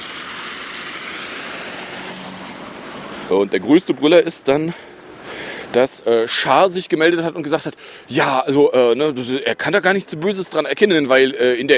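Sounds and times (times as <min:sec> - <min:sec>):
car passing through puddles: 0:00.0 - 0:03.6
speech: 0:03.3 - 0:04.9, 0:05.7 - 0:11.7.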